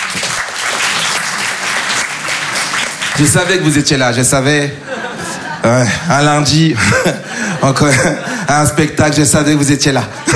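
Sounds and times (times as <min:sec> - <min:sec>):
audience applause: 0:00.0 - 0:03.8
speech: 0:03.2 - 0:04.9, 0:05.6 - 0:10.3
laughter: 0:04.6 - 0:09.2, 0:09.8 - 0:10.3.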